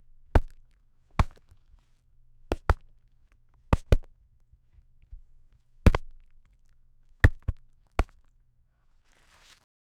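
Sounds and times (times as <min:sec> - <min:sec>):
leather hockey glove catching puck: 0:00.4 - 0:01.6, 0:02.5 - 0:02.9, 0:03.8 - 0:04.1, 0:05.9 - 0:06.3, 0:07.2 - 0:08.3.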